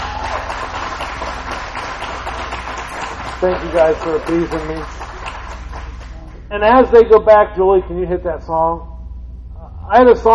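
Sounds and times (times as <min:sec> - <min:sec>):
applause: 0:00.0 - 0:06.2
speech: 0:03.4 - 0:05.0, 0:06.5 - 0:08.9, 0:09.9 - 0:10.3.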